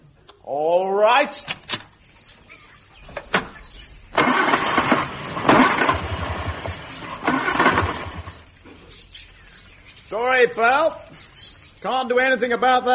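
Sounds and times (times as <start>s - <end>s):
speech: 0.5s - 1.7s, 10.1s - 12.9s
car engine being started, not running properly: 3.6s - 8.4s.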